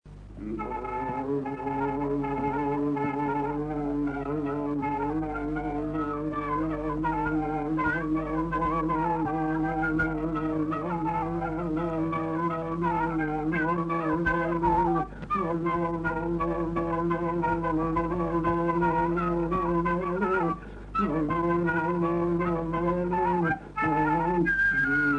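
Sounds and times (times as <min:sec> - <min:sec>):
dance tune played on a caval flute: 0:00.4 - 0:25.1.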